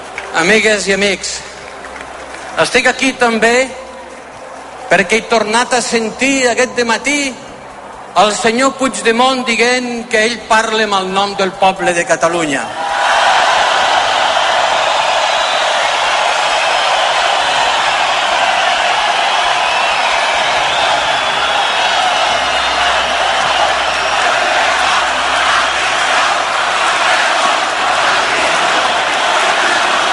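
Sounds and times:
speech: 0:00.3 - 0:01.5, 0:02.6 - 0:03.8, 0:04.9 - 0:07.4, 0:08.2 - 0:12.8
crowd shouting political chants: 0:12.9 - 0:30.1.

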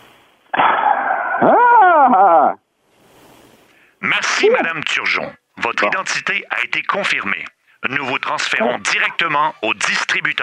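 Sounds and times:
person imitating horse whinny: 0:00.6 - 0:02.6
speech: 0:05.0 - 0:10.4.

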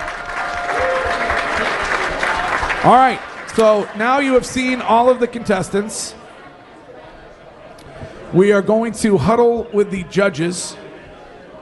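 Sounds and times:
audience applause: 0:00.0 - 0:04.8
speech: 0:02.8 - 0:06.2, 0:08.3 - 0:10.8.

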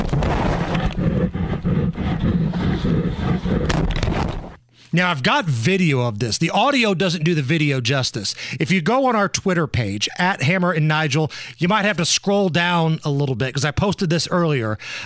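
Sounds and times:
wild bear attacking and roaring: 0:00.2 - 0:04.2
speech: 0:05.0 - 0:15.0.

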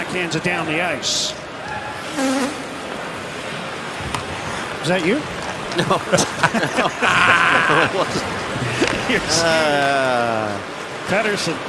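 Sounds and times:
noise: 0:00.0 - 0:11.6
speech: 0:00.1 - 0:02.6, 0:04.8 - 0:11.6
horn blown in the crowd: 0:01.7 - 0:03.0
laughter: 0:05.4 - 0:10.6.

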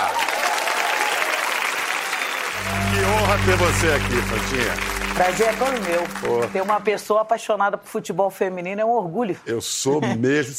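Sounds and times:
applause for a veteran women's football player: 0:00.0 - 0:07.0
speech: 0:03.4 - 0:10.5.

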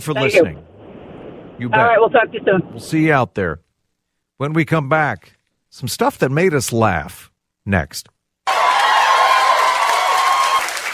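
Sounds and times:
speech: 0:00.0 - 0:00.7, 0:01.6 - 0:03.6, 0:04.4 - 0:08.2
applause: 0:08.5 - 0:10.9.

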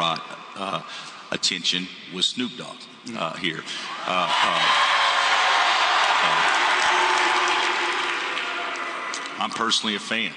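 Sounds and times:
speech: 0:00.0 - 0:05.0, 0:06.2 - 0:06.5, 0:09.4 - 0:10.3
crowd cheering and whooping: 0:03.9 - 0:09.4.

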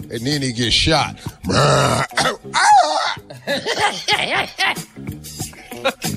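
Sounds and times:
speech: 0:00.1 - 0:02.7, 0:03.4 - 0:05.1, 0:05.8 - 0:06.1
person imitating an injured mountain lion cry: 0:01.4 - 0:03.4
laughter: 0:03.3 - 0:04.9, 0:05.6 - 0:06.1.

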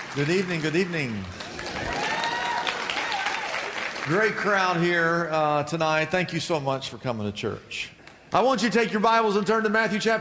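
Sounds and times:
audience applause: 0:00.0 - 0:04.8
speech: 0:00.2 - 0:01.9, 0:04.0 - 0:10.1.

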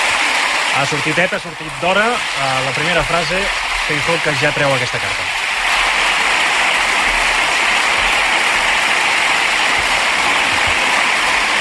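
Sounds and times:
parliamentary applause, many hands clapping: 0:00.0 - 0:11.5
speech: 0:00.8 - 0:05.5.

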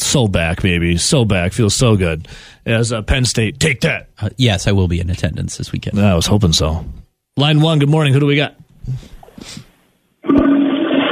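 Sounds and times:
speech: 0:00.1 - 0:10.4
toilet flush sound effect: 0:10.2 - 0:11.1.

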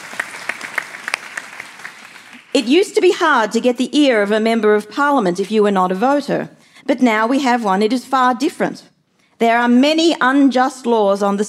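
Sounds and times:
audience applause: 0:00.0 - 0:02.5
speech: 0:02.6 - 0:11.4.

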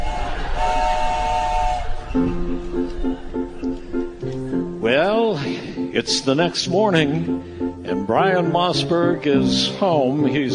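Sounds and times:
horn-like tone: 0:00.0 - 0:02.5
Amtrak passenger train rumbling toward Seattle: 0:00.0 - 0:10.5
speech: 0:02.1 - 0:04.0, 0:04.9 - 0:10.5.

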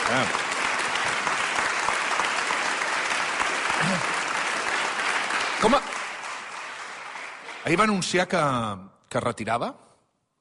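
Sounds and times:
audience applause: 0:00.0 - 0:08.3
speech: 0:00.1 - 0:00.4, 0:05.6 - 0:06.0, 0:07.6 - 0:09.8.

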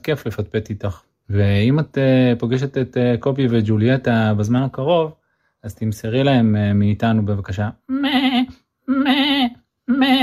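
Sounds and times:
speech: 0:00.0 - 0:08.3
human voice imitating a goat bleating: 0:07.9 - 0:10.2.

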